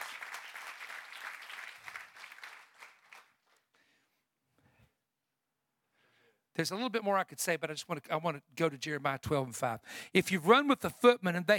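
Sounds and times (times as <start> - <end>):
audience clapping: 0.0 - 3.8
speech: 6.6 - 11.5.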